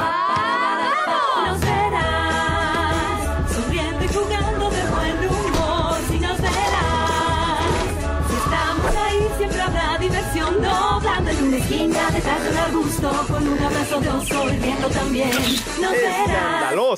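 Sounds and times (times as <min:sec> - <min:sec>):
Spanish Latin song intro with lyrics: 0:00.1 - 0:16.8.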